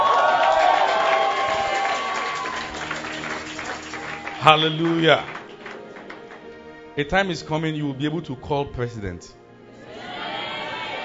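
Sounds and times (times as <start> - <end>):
audience clapping and cheering: 0.0 - 6.9, 10.0 - 11.0
speech: 4.4 - 5.4, 7.0 - 9.4.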